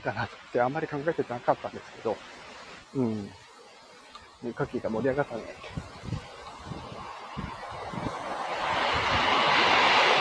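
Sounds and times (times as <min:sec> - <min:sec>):
speech: 0:00.0 - 0:03.4, 0:04.4 - 0:06.2
train passing: 0:06.9 - 0:10.1.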